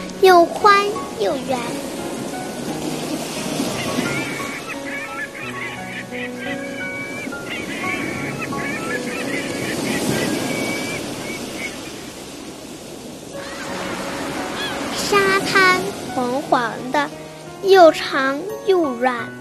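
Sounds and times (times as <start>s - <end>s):
waves splashing onto a sandy beach: 0.0s - 18.8s
speech: 0.2s - 1.9s, 17.7s - 19.4s.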